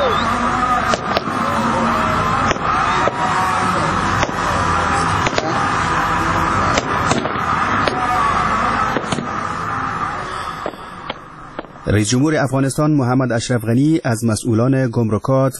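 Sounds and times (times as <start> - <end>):
fireworks exploding in Kabul: 0.1 - 12.0
speech: 12.0 - 15.5.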